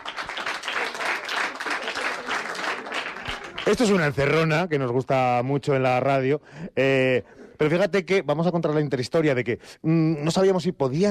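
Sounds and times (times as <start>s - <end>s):
audience applause: 0.0s - 4.3s
speech: 3.7s - 11.1s.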